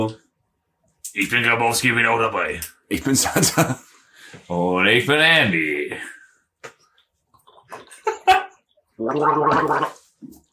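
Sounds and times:
speech: 0.0 - 0.2, 1.2 - 6.2, 9.0 - 10.4
people sipping a refreshing beverage: 7.0 - 8.0, 9.0 - 10.5
swallow: 7.4 - 8.0, 9.0 - 10.5
gurgling gulp: 9.0 - 10.1.

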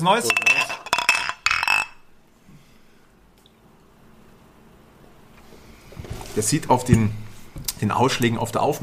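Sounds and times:
speech: 0.0 - 0.6, 6.4 - 7.2, 7.8 - 8.8
glasses clinking in a toast: 0.2 - 2.1.

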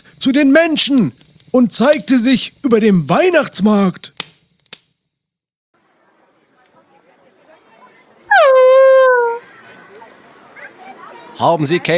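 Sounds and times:
speech: 0.2 - 4.1, 11.4 - 11.9
dog whimpering after nearly being stepped on: 8.3 - 9.5.

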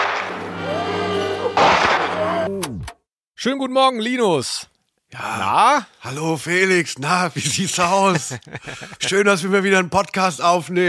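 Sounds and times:
gunshot in a German radio drama: 0.0 - 0.4, 1.6 - 2.3
steady droning tonal background: 0.0 - 2.8
speech: 3.4 - 10.8
laughter: 7.2 - 9.5.

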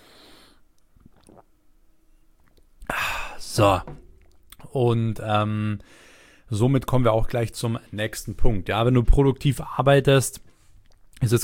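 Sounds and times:
person sipping water: 0.8 - 1.7, 2.4 - 3.4, 4.0 - 4.7, 10.4 - 11.4
speech: 3.6 - 4.0, 4.7 - 10.5, 11.2 - 11.4.

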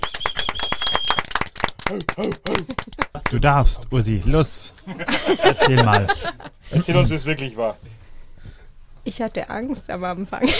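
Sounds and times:
group clapping hands: 0.0 - 3.6
laughter: 1.8 - 3.5, 4.8 - 7.0
speech: 1.9 - 8.0, 9.0 - 10.5.

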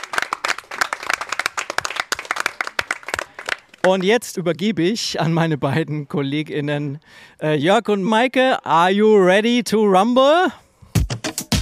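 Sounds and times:
audience applause: 0.0 - 4.0
speech: 3.8 - 10.6.

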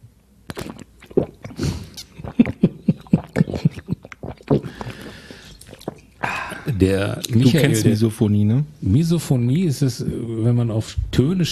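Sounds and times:
loud wet chewing and biting: 0.5 - 6.3
faint breathy noise: 4.6 - 6.8
speech: 6.8 - 11.5.

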